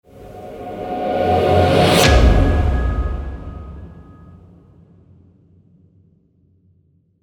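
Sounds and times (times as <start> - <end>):
hybrid epic logo sting: 0.1 - 4.5.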